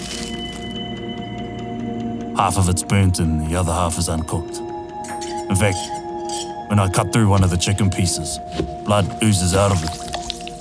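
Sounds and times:
tinfoil pulled off a chicken dish: 0.0s - 0.7s
speech: 2.4s - 4.7s, 5.5s - 10.0s.

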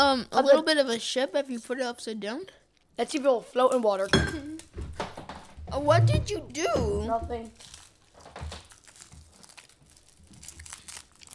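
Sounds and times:
speech: 0.0s - 4.6s, 5.7s - 7.8s
crinkly plastic candy wrapping being handled and pulled open: 7.4s - 11.3s.

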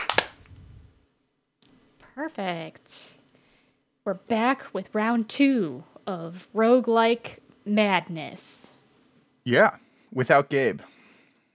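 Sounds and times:
single hand clap for sync: 0.0s - 0.6s
speech: 2.2s - 3.2s, 4.0s - 8.7s, 9.5s - 10.9s.

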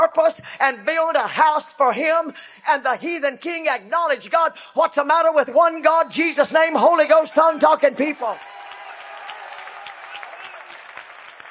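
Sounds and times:
speech: 0.1s - 8.6s
audience clapping: 8.0s - 11.4s.

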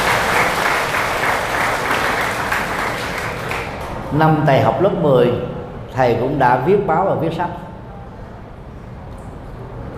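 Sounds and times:
audience applause: 0.0s - 4.1s
speech: 4.1s - 7.6s.

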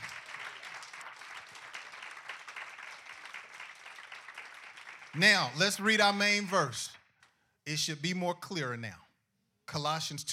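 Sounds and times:
audience hand clapping: 0.0s - 7.4s
speech: 5.2s - 7.0s, 7.7s - 9.0s, 9.7s - 10.3s.

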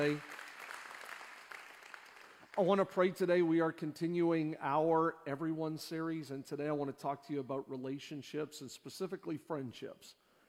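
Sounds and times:
speech: 0.0s - 0.3s, 2.6s - 10.2s
audience applause: 0.0s - 2.6s.

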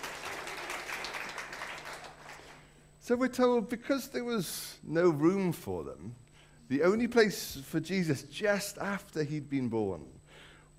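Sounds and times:
round of applause: 0.0s - 2.7s
speech: 3.1s - 10.2s.

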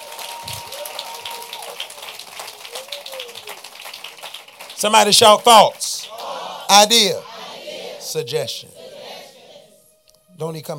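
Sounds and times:
audience clapping: 0.0s - 7.0s
speech: 4.8s - 5.9s, 6.7s - 7.3s, 8.1s - 8.8s, 10.4s - 10.7s.

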